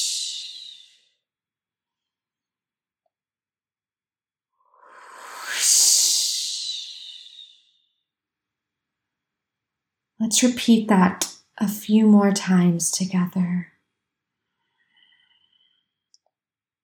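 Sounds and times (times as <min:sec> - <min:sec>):
whooshing exhale of breath: 0:04.7 - 0:07.6
speech: 0:10.2 - 0:13.7.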